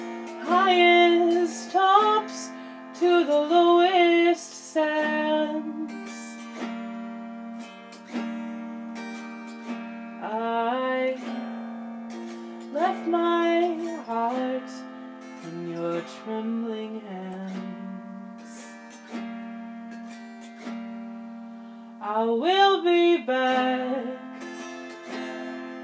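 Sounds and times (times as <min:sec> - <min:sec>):
person singing an original song: 0:00.0 - 0:06.7, 0:10.2 - 0:11.6, 0:12.7 - 0:19.0, 0:22.0 - 0:24.6
autoharp: 0:00.0 - 0:25.8.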